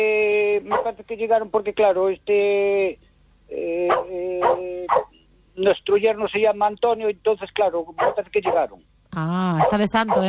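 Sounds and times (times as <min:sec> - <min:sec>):
dog barking and whining at someone arriving at the house: 0:00.7 - 0:01.0, 0:03.9 - 0:05.2, 0:08.0 - 0:08.7, 0:09.6 - 0:10.2
speech: 0:00.8 - 0:10.2.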